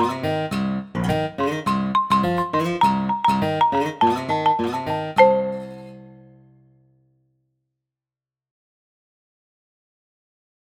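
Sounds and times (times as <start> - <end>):
MIDI blues music: 0.0 - 6.2.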